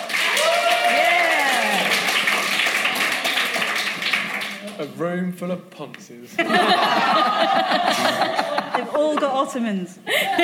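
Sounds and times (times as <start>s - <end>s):
people whooping: 0.0s - 2.1s
live audience clapping: 0.0s - 5.1s
speech: 5.0s - 10.4s
laughter: 6.4s - 9.5s, 10.1s - 10.4s.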